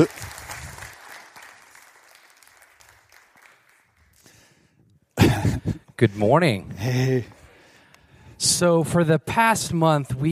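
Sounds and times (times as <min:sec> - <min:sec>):
audience applause greeting a children's pastor: 0:00.0 - 0:04.5
speech: 0:06.0 - 0:07.4, 0:08.6 - 0:10.3.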